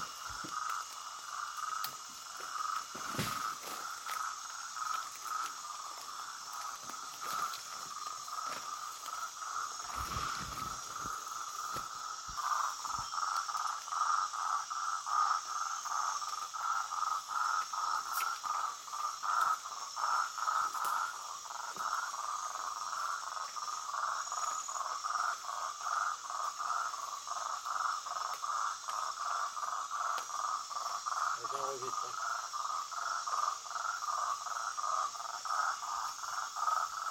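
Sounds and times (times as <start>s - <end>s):
high insect buzzing: 0.0s - 23.2s
Marty's toad calling: 0.0s - 37.0s.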